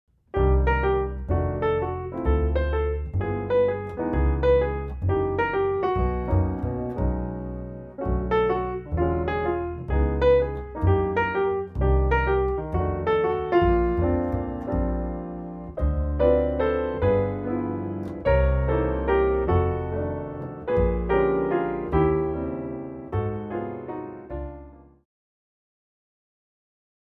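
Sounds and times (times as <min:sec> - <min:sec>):
waltz music: 0:00.5 - 0:24.8.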